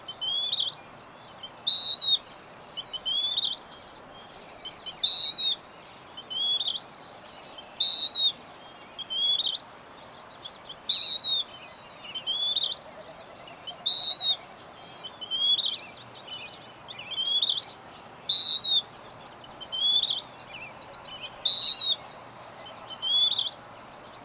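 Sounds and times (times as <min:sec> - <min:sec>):
bird song of high whistled phrases: 0:00.1 - 0:24.2.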